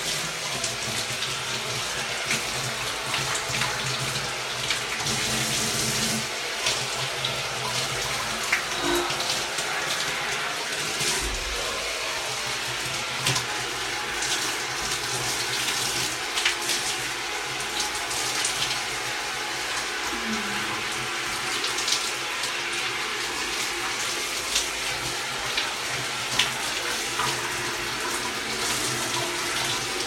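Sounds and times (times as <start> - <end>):
shower water running: 0.0 - 30.0
person moaning: 8.7 - 9.5, 20.1 - 21.1.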